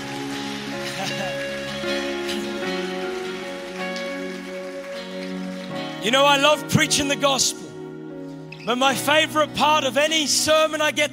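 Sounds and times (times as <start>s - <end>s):
audience applause: 0.0s - 6.9s
laughter: 0.8s - 1.7s
speech: 1.0s - 2.0s, 6.0s - 7.6s, 8.7s - 11.1s.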